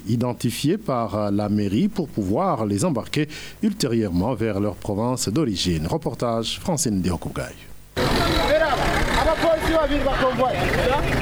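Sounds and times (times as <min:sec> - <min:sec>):
speech: 0:00.1 - 0:08.4, 0:09.3 - 0:11.2
people chattering at Braroudi kiosk: 0:07.1 - 0:11.2
bus and van engines rumbling: 0:08.0 - 0:11.2
traffic noise from buses, coasters and police vans in Bujumbura city centre: 0:08.0 - 0:11.2.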